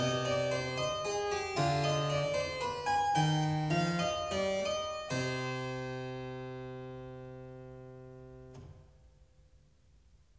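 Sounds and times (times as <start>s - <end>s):
minuet in C minor: 0.0s - 7.3s.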